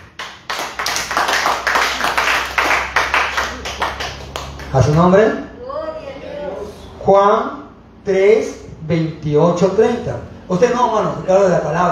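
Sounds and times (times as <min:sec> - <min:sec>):
group clapping hands in a steady rhythmic beat: 0:00.0 - 0:05.2
speech: 0:04.7 - 0:05.5, 0:07.1 - 0:11.8.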